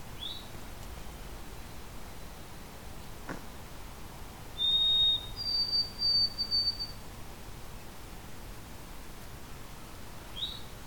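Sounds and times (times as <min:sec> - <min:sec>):
white-throated sparrow whistling song: 0:00.2 - 0:00.5, 0:04.6 - 0:07.0, 0:10.4 - 0:10.7.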